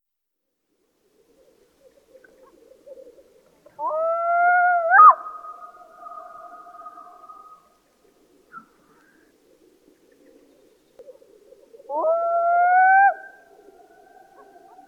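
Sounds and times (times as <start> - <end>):
black-throated loon calls with echo: 3.8 - 7.7, 11.9 - 14.8.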